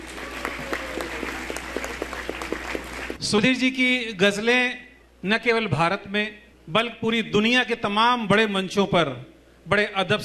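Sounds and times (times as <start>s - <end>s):
audience applause welcoming performer to stage: 0.0s - 3.2s
speech: 3.2s - 10.2s.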